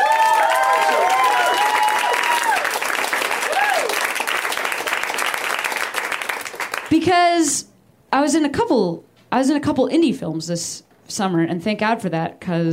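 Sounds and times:
audience applause: 0.0 - 6.9
speech: 7.0 - 12.7.

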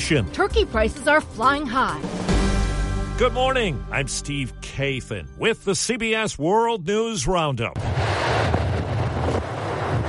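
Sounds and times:
speech: 0.1 - 2.3, 3.2 - 8.0
Hurricane Nicole wind on Florida's east coast: 7.8 - 10.0.

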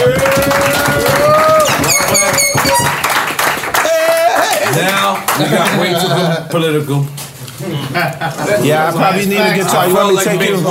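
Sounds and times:
cheering voices: 0.0 - 4.7
audience clapping and applause: 0.0 - 5.9
shrill whistles: 1.4 - 3.1
laughter: 5.4 - 6.8, 7.7 - 8.8
speech: 5.4 - 7.2, 7.9 - 10.6.

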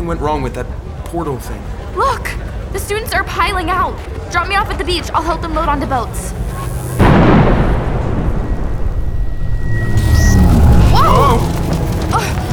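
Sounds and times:
speech: 0.0 - 6.6
heavy crackling rumble: 4.8 - 12.5
electric energy burst: 6.1 - 12.5
warbling chirps: 8.0 - 12.2.

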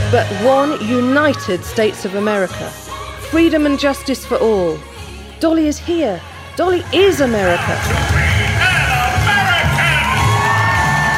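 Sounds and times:
speech: 0.1 - 8.1
crowd screaming: 7.0 - 11.1.

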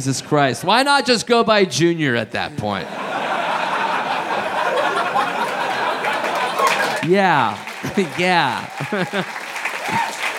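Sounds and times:
speech: 0.0 - 3.0, 7.0 - 10.0
voices calling out and laughing: 2.5 - 9.4
audience clapping: 3.6 - 10.3.

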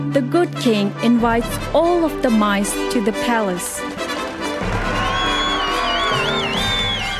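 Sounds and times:
speech: 0.2 - 4.0
crowd cheering and applauding: 3.4 - 7.1
whoops: 4.7 - 7.1.

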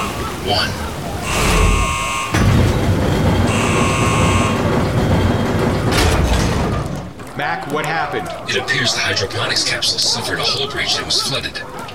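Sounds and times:
laughter: 0.0 - 2.2, 7.4 - 11.9
mechanical rumble: 0.1 - 7.2
speech: 0.4 - 1.4, 7.4 - 11.8
electronic buzzer blasts: 1.2 - 2.6, 3.4 - 4.9.

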